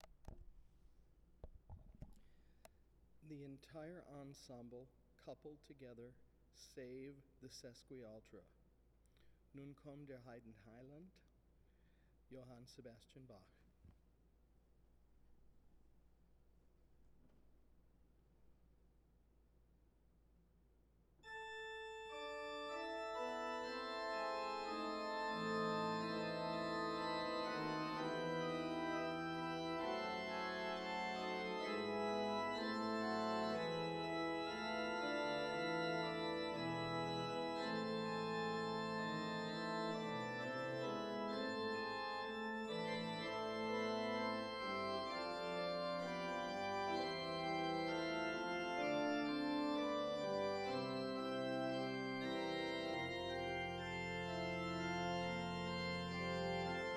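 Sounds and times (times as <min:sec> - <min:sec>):
organ tutti without sesquialtera stop: 0:21.2 - 0:56.9.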